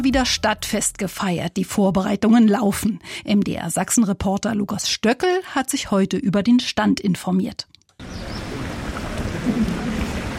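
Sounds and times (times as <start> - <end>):
speech: 0.0 - 8.4, 9.5 - 10.0
fountains splashing on the Pirna market square: 8.0 - 10.3.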